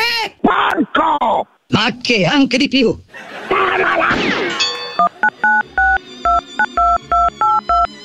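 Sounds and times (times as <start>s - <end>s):
speech: 0.2s - 4.4s
laughter: 3.1s - 5.9s
touch-tone telephone dialing beeps: 5.0s - 7.9s.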